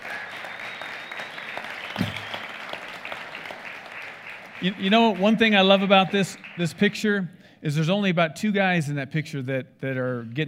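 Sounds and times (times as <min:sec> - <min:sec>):
audience applause: 0:00.0 - 0:07.2
speech: 0:04.6 - 0:10.4.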